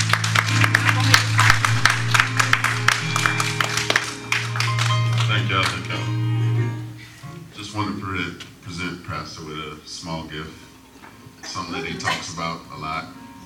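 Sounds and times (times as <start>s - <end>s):
audience clapping: 0.0s - 6.5s
speech: 9.2s - 10.6s, 11.6s - 13.2s.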